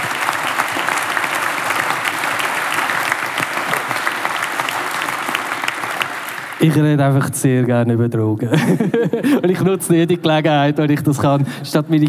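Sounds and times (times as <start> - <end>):
audience clapping: 0.0 - 7.0
speech: 6.6 - 12.0
laughter: 8.5 - 9.8.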